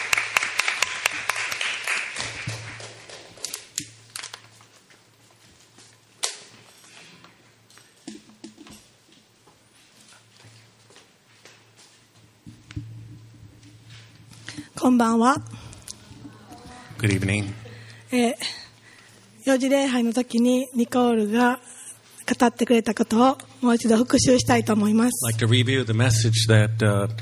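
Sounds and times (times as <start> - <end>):
audience applause: 0.0 - 3.4
speech: 14.8 - 15.5, 17.0 - 18.6, 19.5 - 21.7, 22.4 - 27.2.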